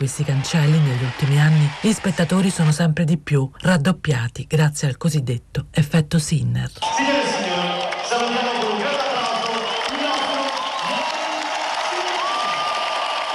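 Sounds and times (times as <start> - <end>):
tennis crowd ovation and applause: 0.0 - 2.6, 6.8 - 13.3
speech: 0.0 - 7.5.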